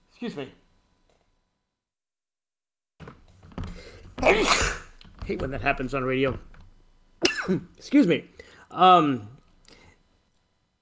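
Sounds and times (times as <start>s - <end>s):
speech: 0.2s - 0.6s, 4.2s - 4.7s, 5.3s - 6.5s, 7.4s - 9.4s
sneeze: 4.2s - 4.9s, 7.2s - 7.6s.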